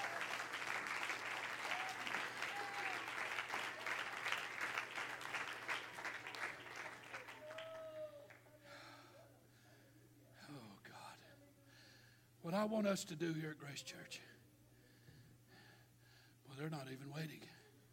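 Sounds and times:
cheers and vocal whoops: 0:00.0 - 0:00.6, 0:01.3 - 0:04.4, 0:07.0 - 0:08.4
crowd clapping hands: 0:00.0 - 0:08.5
speech: 0:12.5 - 0:14.4, 0:16.6 - 0:17.6.

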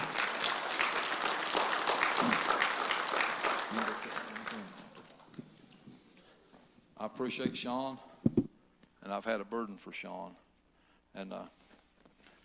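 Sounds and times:
audience applause: 0:00.0 - 0:05.4
speech: 0:07.2 - 0:08.4, 0:09.1 - 0:10.4, 0:11.2 - 0:11.7.

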